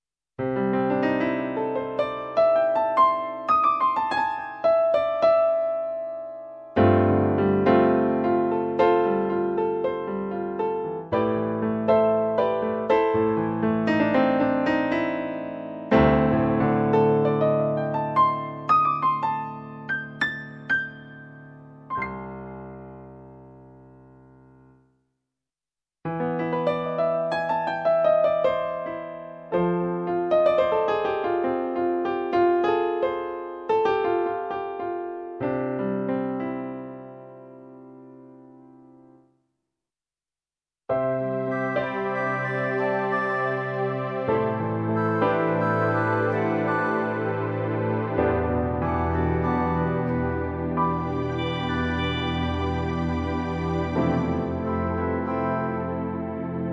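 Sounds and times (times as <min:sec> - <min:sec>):
piano: 0:00.4 - 0:25.0, 0:26.0 - 0:39.4, 0:40.9 - 0:56.7.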